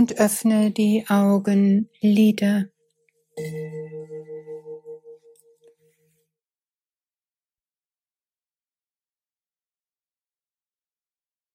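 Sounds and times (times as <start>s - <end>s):
speech: 0.0s - 2.7s, 3.4s - 3.8s
gong strike ringing: 3.4s - 5.4s.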